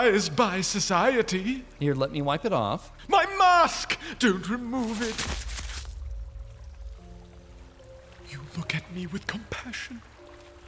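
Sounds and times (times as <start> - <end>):
speech: 0.0 - 5.6, 8.3 - 10.1
water poured for scrubbing: 4.3 - 10.6.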